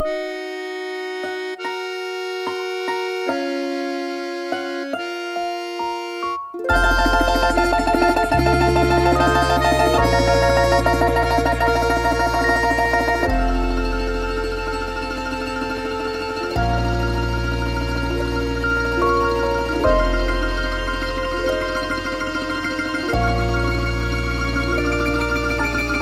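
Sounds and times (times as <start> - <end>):
instrumental music: 0.0 - 26.0.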